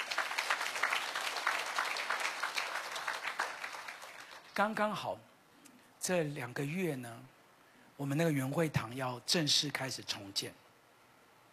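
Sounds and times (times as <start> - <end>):
audience clapping: 0.0 - 4.8
speech: 4.6 - 5.3, 6.1 - 7.4, 8.0 - 10.6.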